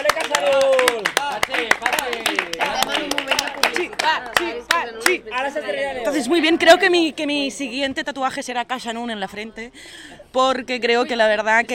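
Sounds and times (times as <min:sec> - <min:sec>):
group applauding: 0:00.0 - 0:05.4
speech: 0:05.3 - 0:11.7.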